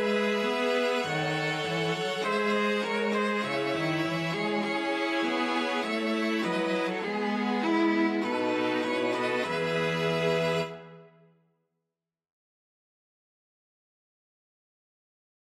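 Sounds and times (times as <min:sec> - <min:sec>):
string quartet playing a national anthem: 0:00.0 - 0:11.0.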